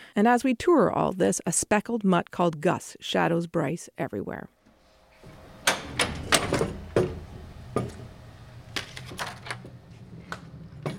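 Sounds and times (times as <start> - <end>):
speech: 0.2 - 4.6
Vandercook letterpress printing press in operation with hand-inked rollers: 5.3 - 9.6.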